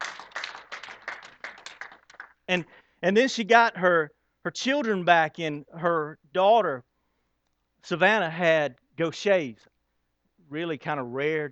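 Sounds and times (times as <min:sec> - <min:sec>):
audience clapping after a story: 0:00.0 - 0:02.5
speech: 0:02.5 - 0:06.9, 0:07.8 - 0:09.7, 0:10.5 - 0:11.4.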